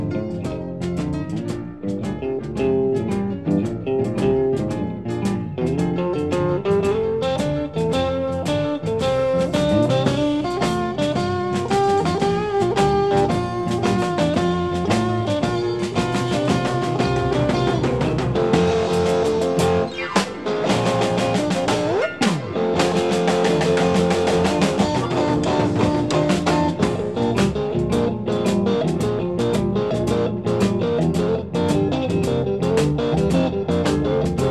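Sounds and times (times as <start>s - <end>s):
honky tonk music: 0.0s - 34.4s.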